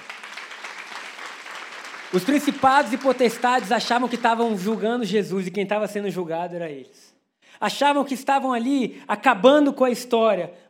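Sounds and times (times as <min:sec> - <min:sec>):
audience applause: 0:00.0 - 0:05.2
speech: 0:02.1 - 0:10.6.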